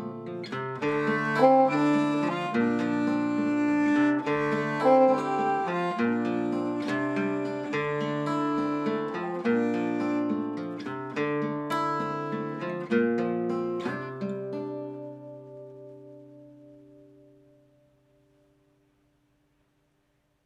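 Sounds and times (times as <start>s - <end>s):
guitar playing an Eastern theme: 0.0s - 18.8s
violin playing an Eastern theme: 0.7s - 10.8s.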